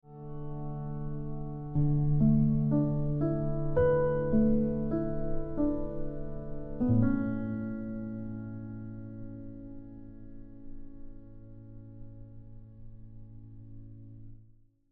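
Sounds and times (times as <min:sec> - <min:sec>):
piano ringtone music: 0:00.1 - 0:11.0.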